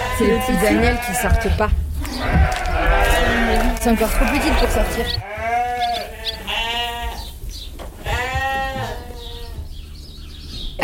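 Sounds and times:
sheep bleating: 0:00.0 - 0:07.4, 0:08.0 - 0:09.7
faint farmyard rumble: 0:00.0 - 0:10.8
speech: 0:00.2 - 0:02.6, 0:03.7 - 0:05.4.

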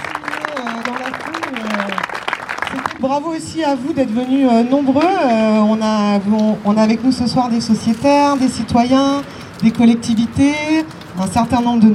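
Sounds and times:
audience clapping at an evening gathering honouring a team: 0:00.0 - 0:03.2
speech: 0:03.0 - 0:11.9.

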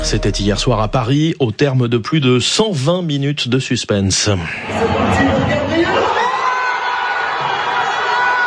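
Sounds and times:
speech: 0:00.1 - 0:06.0
over 48,000 PSG supporters erupting in cheers at the Parc des Princes: 0:04.6 - 0:08.4.

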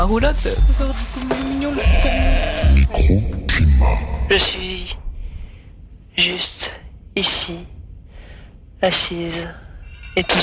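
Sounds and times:
speech: 0:00.0 - 0:02.2, 0:03.0 - 0:05.0, 0:06.2 - 0:07.8, 0:08.8 - 0:09.6, 0:10.2 - 0:10.4
sheep bleating: 0:01.6 - 0:03.0.

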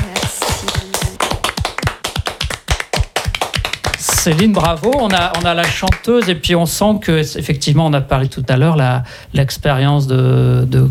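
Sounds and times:
audience applause for singer: 0:00.0 - 0:06.4
speech: 0:04.2 - 0:10.8.

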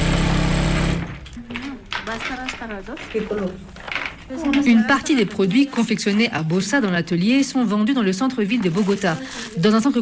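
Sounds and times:
sewing machine running in a workshop in Bosa, Bogotá: 0:00.0 - 0:01.2
speech: 0:02.1 - 0:10.0.

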